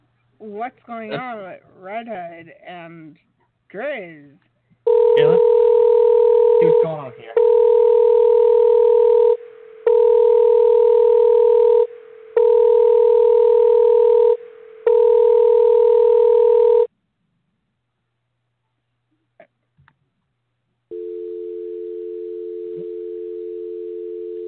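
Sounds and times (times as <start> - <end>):
speech: 0.4 - 5.7, 6.6 - 7.7
telephone call ringing unanswered: 4.9 - 16.9, 20.9 - 24.4.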